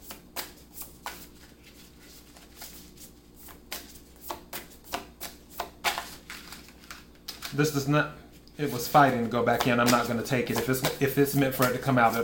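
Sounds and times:
tarot cards being shuffled: 0.1s - 7.8s, 8.7s - 12.2s
speech: 7.6s - 12.2s.

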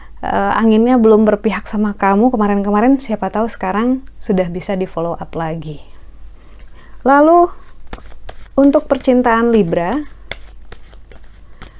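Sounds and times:
soft steady noise: 0.0s - 11.7s
speech: 0.2s - 5.9s, 7.0s - 10.2s
tarot cards being shuffled: 7.6s - 11.7s.

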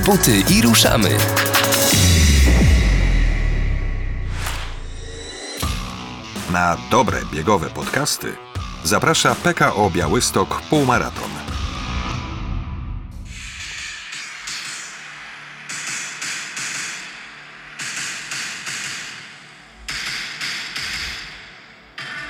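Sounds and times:
speech: 0.1s - 1.5s, 6.5s - 11.4s
low rumbling drone in a film theme: 1.8s - 6.2s.

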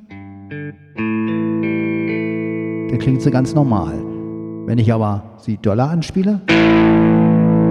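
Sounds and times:
distorted electric guitar chords struck hard: 0.0s - 4.9s, 6.5s - 7.7s
speech: 0.5s - 1.2s, 2.9s - 4.0s, 4.7s - 7.2s.

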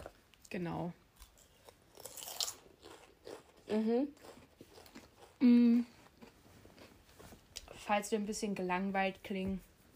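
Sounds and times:
speech: 0.5s - 1.0s, 3.7s - 4.3s, 5.4s - 6.0s, 7.9s - 9.7s
crunching tortilla chips with salsa dip: 1.2s - 5.4s.

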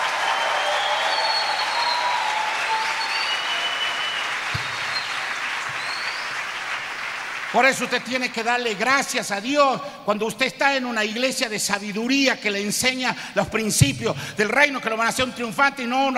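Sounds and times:
audience applause: 0.0s - 8.3s
speech: 7.5s - 16.1s.

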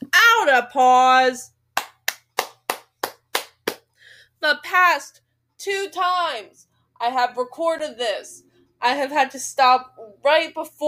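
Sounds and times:
speech: 0.5s - 1.6s, 4.4s - 10.8s
hand clapping: 1.8s - 3.9s.

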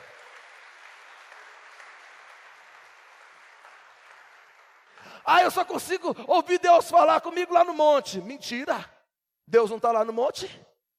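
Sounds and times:
audience applause: 0.0s - 5.5s
speech: 5.2s - 8.9s, 9.5s - 10.7s.

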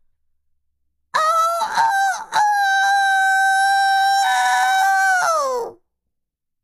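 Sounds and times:
rooster crowing toward the sky: 1.2s - 5.7s.

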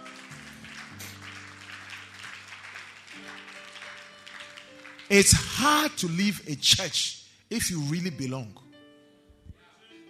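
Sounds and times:
audience clapping: 0.0s - 6.9s
speech: 5.1s - 8.6s.

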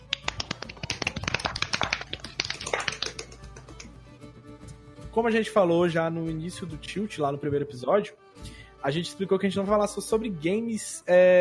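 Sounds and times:
many hands clapping applause: 0.0s - 4.0s
speech: 5.2s - 8.2s, 8.8s - 11.3s.

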